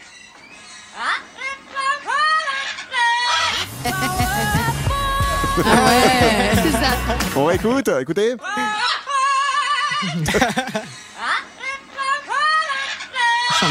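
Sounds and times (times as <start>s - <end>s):
parrot singing a pop song: 1.0s - 6.5s
laughter: 3.6s - 7.8s, 8.5s - 12.7s
speech: 3.8s - 4.9s, 5.5s - 8.9s, 10.0s - 11.1s.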